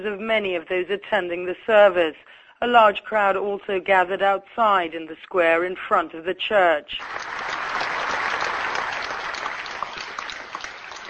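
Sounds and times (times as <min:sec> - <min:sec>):
speech: 0:00.0 - 0:07.6
crowd applause at funeral: 0:07.0 - 0:11.0.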